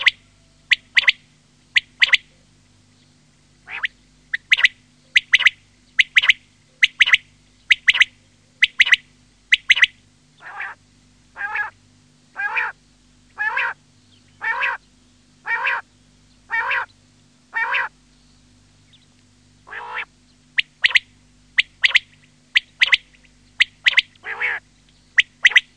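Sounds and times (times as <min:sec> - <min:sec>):
quail repeating clipped three-note phrases: 0:00.0 - 0:02.4, 0:03.6 - 0:10.8, 0:11.4 - 0:11.8, 0:12.4 - 0:12.8, 0:13.4 - 0:14.8, 0:15.4 - 0:15.9, 0:16.5 - 0:18.0, 0:19.6 - 0:25.7.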